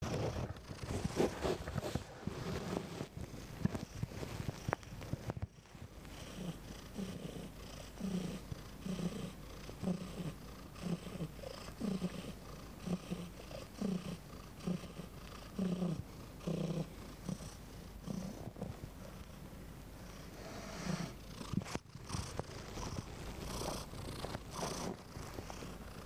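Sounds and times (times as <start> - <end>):
scratchy rustling and clicks: 0.0 - 6.2, 21.3 - 26.0
cat purring: 0.0 - 26.0.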